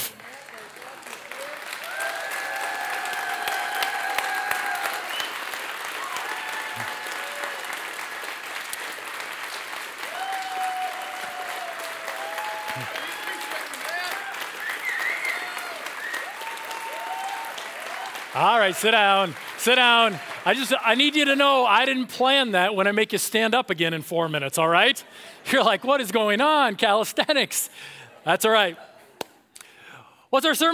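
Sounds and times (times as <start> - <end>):
church congregation standing and applauding: 0.0 - 22.4
scattered voices and cheers: 0.3 - 8.0, 10.0 - 21.3
speech: 18.6 - 28.9, 30.3 - 30.7.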